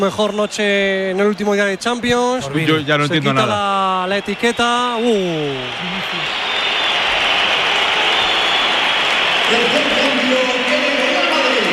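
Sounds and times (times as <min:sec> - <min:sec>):
speech: 0:00.0 - 0:06.4, 0:09.5 - 0:10.4
crowd roar: 0:01.2 - 0:11.7
crowd applause: 0:02.5 - 0:11.7.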